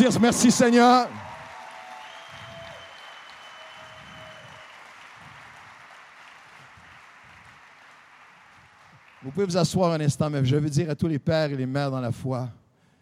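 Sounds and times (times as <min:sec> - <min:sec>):
speech: 0:00.0 - 0:01.2, 0:09.3 - 0:12.6
audience applause: 0:00.0 - 0:09.8.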